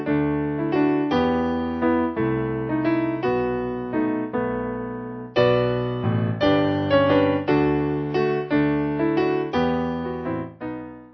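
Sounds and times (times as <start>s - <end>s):
piano piece: 0.0s - 11.1s.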